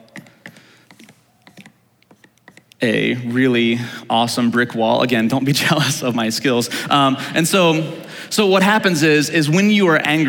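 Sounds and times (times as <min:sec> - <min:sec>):
scratchy strokes drawing a brick wall picture: 0:00.9 - 0:02.8
speech: 0:02.8 - 0:10.2.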